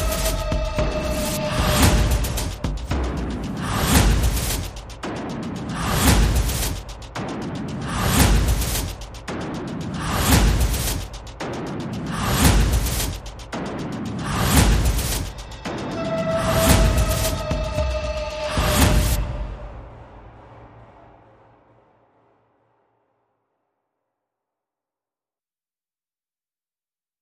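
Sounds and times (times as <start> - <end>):
percussion: 0.0 - 21.3.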